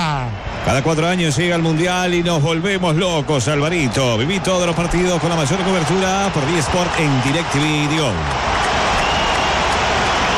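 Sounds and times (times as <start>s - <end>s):
stadium crowd roaring at half-time of World Cup football match in Miami: 0.0s - 10.3s
speech: 0.7s - 8.5s.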